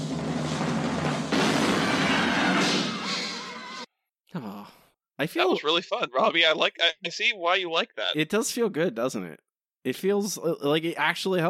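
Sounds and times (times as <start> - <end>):
cannon firing sound effect: 0.2 - 3.1
speech: 5.2 - 11.4
laughter: 5.3 - 7.9.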